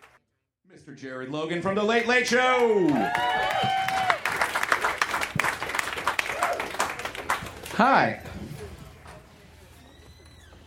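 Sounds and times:
speech: 0.8 - 3.9, 7.8 - 8.3
cheers: 1.9 - 4.7, 6.1 - 7.1
audience applause: 2.6 - 7.8.

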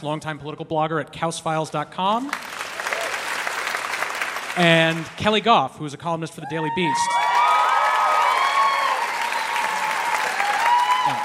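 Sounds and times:
speech: 0.0 - 2.7, 4.6 - 7.4
audience applause: 2.3 - 5.2, 7.1 - 11.2.

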